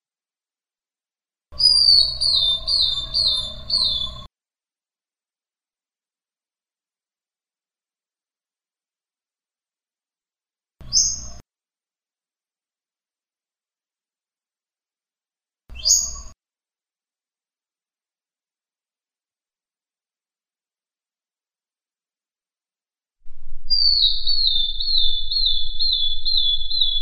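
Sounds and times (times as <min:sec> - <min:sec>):
bird singing one long high pure whistle: 0:01.6 - 0:04.3, 0:15.7 - 0:16.3, 0:23.6 - 0:27.0.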